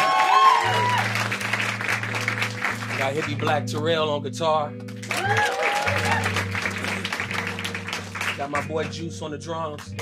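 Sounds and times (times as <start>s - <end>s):
audience applause: 0.0s - 3.5s, 5.0s - 8.7s
speech: 3.0s - 5.6s, 8.4s - 10.0s.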